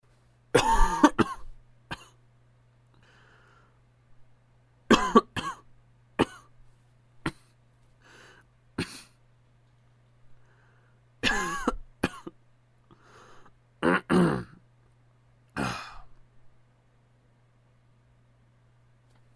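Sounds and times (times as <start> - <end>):
person coughing: 0.5 - 2.2, 4.9 - 5.6, 6.2 - 6.5, 7.2 - 7.6, 8.8 - 9.2, 11.2 - 12.3, 13.8 - 14.6, 15.6 - 16.1.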